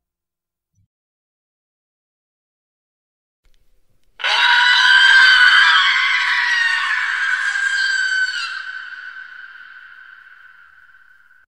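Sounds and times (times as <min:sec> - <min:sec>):
creepy horror sound effects: 0:04.2 - 0:11.4.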